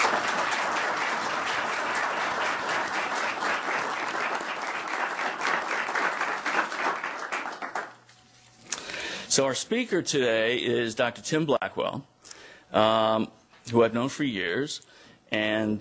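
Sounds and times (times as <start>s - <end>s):
audience applause: 0.0s - 8.0s
speech: 9.4s - 12.1s, 12.7s - 15.7s.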